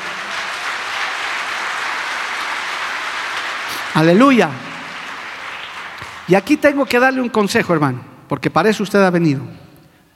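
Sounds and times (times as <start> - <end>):
audience applauding: 0.0 - 6.9
speech: 4.0 - 4.6, 6.3 - 9.6.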